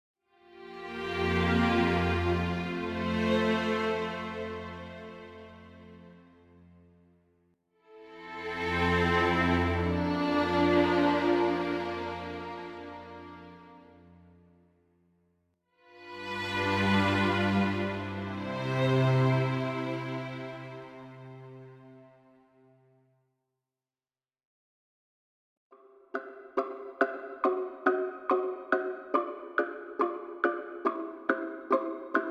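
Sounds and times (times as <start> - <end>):
office background music: 0.4 - 6.9, 7.9 - 14.1, 16.0 - 22.5, 26.1 - 32.2.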